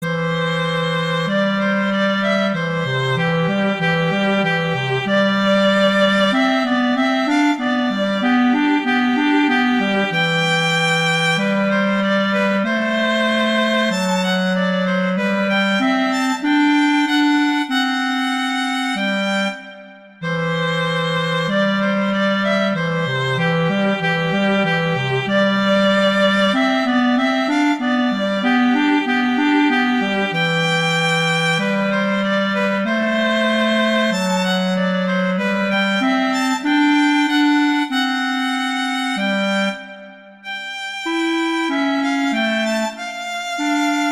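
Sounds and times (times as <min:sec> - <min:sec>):
horn duet: 0:00.0 - 0:44.0.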